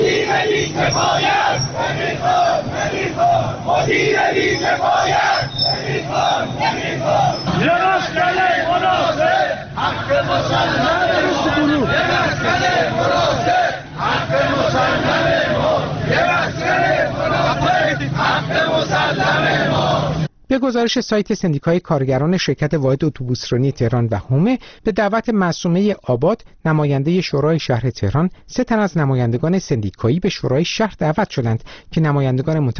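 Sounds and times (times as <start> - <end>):
protesters chanting slogans at a rally: 0.0 - 20.3
speech: 20.6 - 32.7.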